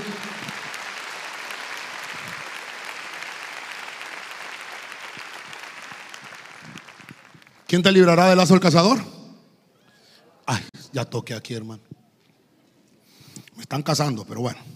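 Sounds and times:
audience applauding: 0.0 - 8.3
speech: 7.7 - 9.2, 11.0 - 11.9, 13.7 - 14.7.

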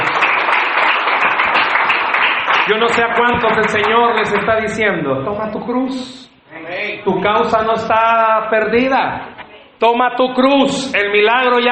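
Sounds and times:
crowd applauding: 0.0 - 4.9
speech: 2.7 - 11.6.

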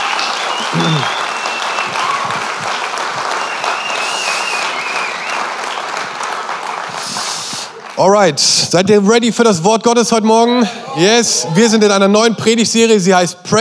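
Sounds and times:
large audience applause: 0.0 - 8.4
speech: 0.8 - 1.2, 8.0 - 13.5.

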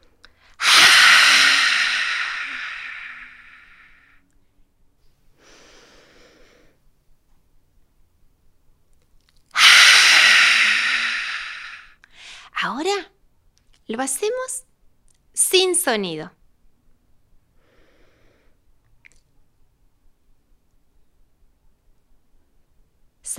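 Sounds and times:
person exhaling: 0.3 - 4.1, 5.4 - 6.8, 9.6 - 12.5
speech: 13.9 - 14.7, 15.5 - 16.4.

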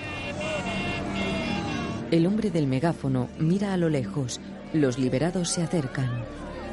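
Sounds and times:
car with flags passing the bus: 0.0 - 2.1
speech: 2.1 - 6.5.

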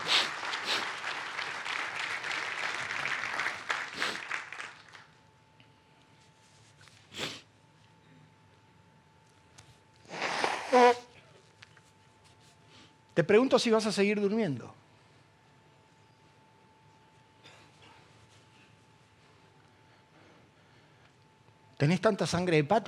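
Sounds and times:
audience applauding: 0.0 - 5.1
speech: 13.2 - 14.8, 21.8 - 22.8.

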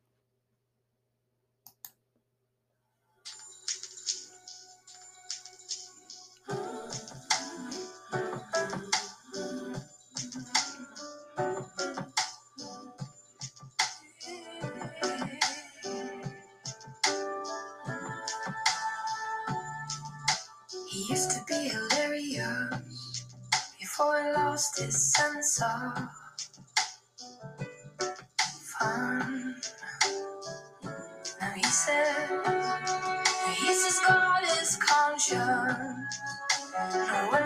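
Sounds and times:
steady rhythmic percussive hits: 3.3 - 14.0, 14.6 - 22.1, 26.4 - 37.4
dense layered instrumental song opening: 3.3 - 23.7, 26.2 - 37.4
speech: 24.0 - 26.2.

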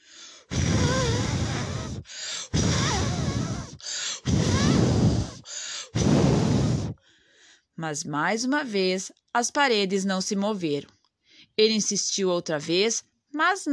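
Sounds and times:
voice imitating a wolf blowing hard like a gale: 0.0 - 7.0
person inhaling: 0.0 - 7.7, 11.2 - 11.6
speech: 7.8 - 11.0, 11.6 - 13.7.

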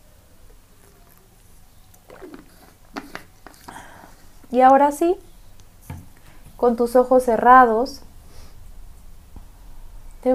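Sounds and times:
quiet sips of water: 0.4 - 4.8
soft swallows: 0.5 - 4.5
small wet mouth clicks: 0.5 - 4.6
speech: 4.5 - 5.3, 6.6 - 8.1.

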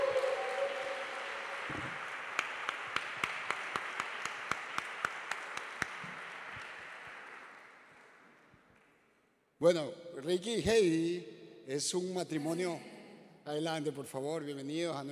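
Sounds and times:
audience applause: 0.0 - 8.2
sharp evenly spaced claps: 0.0 - 9.2
speech: 9.6 - 12.9, 13.5 - 15.1.

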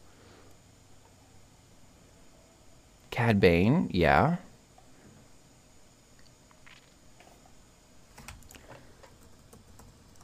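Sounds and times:
steady hiss: 0.0 - 10.2
speech: 3.2 - 4.5
typing on a computer keyboard while searching Wikipedia: 9.0 - 10.2.

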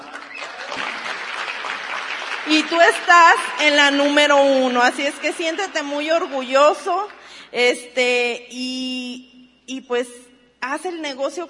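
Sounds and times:
audience applause: 0.0 - 7.3
speech: 2.5 - 11.4.

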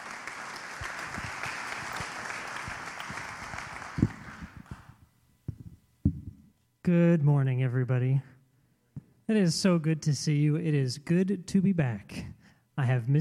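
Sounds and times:
audience applause: 0.0 - 4.9
speech: 6.9 - 8.3, 9.3 - 13.2.

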